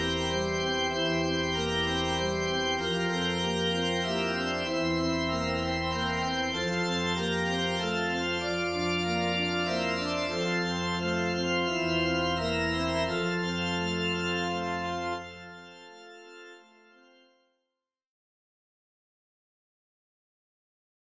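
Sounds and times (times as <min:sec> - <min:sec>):
hymn in low F: 0:00.0 - 0:16.9.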